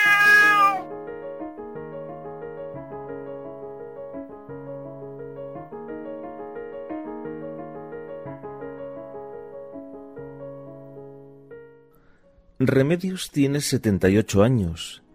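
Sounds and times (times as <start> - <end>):
cat meowing: 0.0 - 0.9
speech: 12.6 - 15.0.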